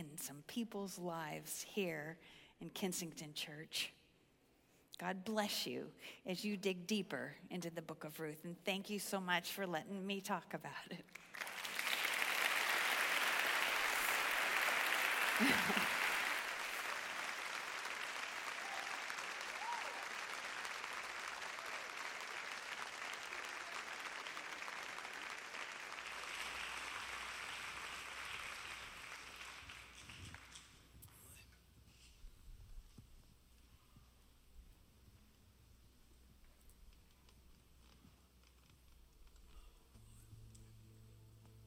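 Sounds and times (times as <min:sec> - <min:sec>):
speech: 0:00.2 - 0:04.0, 0:05.0 - 0:11.6
crowd applauding: 0:11.1 - 0:31.0
person laughing: 0:15.3 - 0:16.3.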